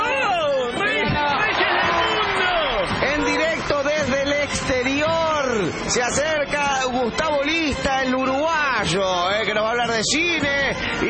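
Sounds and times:
loud applause: 0.0 - 6.6
speech: 5.6 - 11.0.

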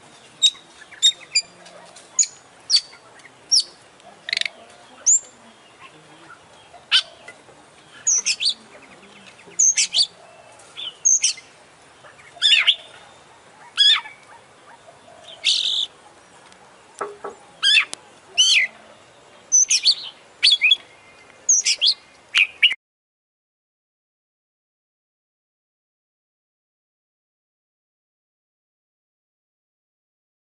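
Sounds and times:
Oriental magpie-robin song: 0.0 - 22.8.

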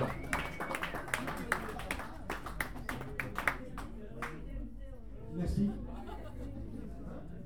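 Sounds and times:
audience clapping at a music jam: 0.0 - 4.5
laughter: 5.5 - 7.2.

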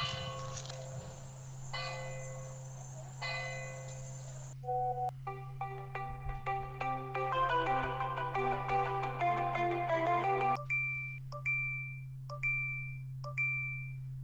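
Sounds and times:
steady low hum: 0.0 - 14.2
bright tinkling phone ringtone melody: 4.7 - 11.6.

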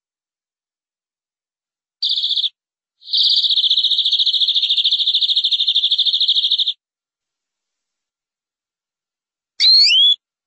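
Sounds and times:
canary singing: 2.0 - 6.8, 9.6 - 10.2.

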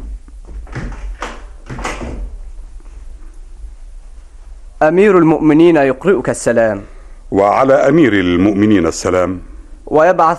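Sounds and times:
door opening at night with wooden knocks and creaks: 0.0 - 2.4
low rumbling hush: 1.4 - 10.3
speech: 4.8 - 10.3.

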